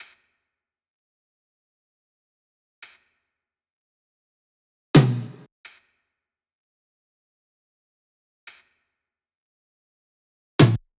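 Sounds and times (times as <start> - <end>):
percussion loop at 170 BPM: 10.6 - 10.8.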